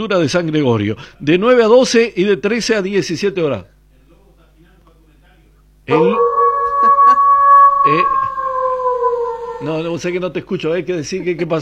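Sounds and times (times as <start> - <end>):
speech: 0.0 - 3.8, 5.9 - 6.3, 7.9 - 8.2, 9.6 - 11.6
wolf howling: 5.9 - 10.1.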